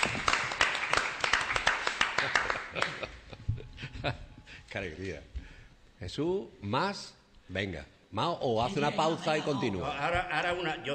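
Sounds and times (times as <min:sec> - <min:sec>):
applause: 0:00.0 - 0:03.1
laughter: 0:02.2 - 0:04.5, 0:08.7 - 0:10.2
speech: 0:04.0 - 0:05.4, 0:06.0 - 0:10.9.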